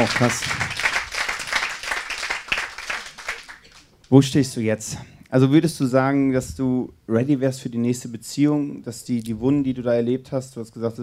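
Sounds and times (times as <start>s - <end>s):
speech: 0.0s - 0.6s, 4.1s - 11.0s
audience applause: 0.0s - 3.9s.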